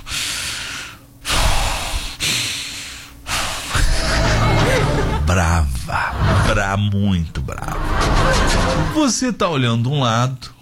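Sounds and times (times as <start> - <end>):
person imitating heavy angry breathing through nose: 0.0 - 3.8
laughter: 3.8 - 6.7, 7.6 - 9.0
speech: 6.6 - 10.5.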